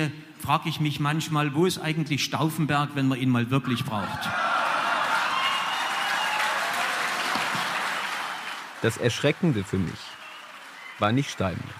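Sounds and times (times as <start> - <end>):
speech: 0.0 - 4.5, 8.8 - 10.1, 11.0 - 11.7
audience hooting and jeering: 4.0 - 8.6.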